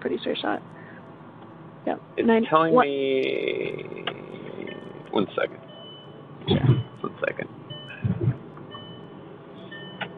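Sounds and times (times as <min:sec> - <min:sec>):
speech: 0:00.0 - 0:00.8, 0:01.8 - 0:04.1, 0:05.1 - 0:05.6, 0:06.5 - 0:07.5
low road rumble: 0:00.0 - 0:10.1
car seatbelt warning beeping for unbuckled front passenger: 0:04.1 - 0:10.1
soft thumps: 0:07.9 - 0:08.4.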